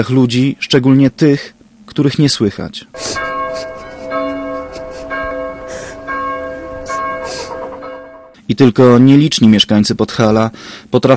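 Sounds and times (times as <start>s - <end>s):
speech: 0.0s - 3.7s, 8.5s - 11.1s
church bells ringing: 3.0s - 8.4s.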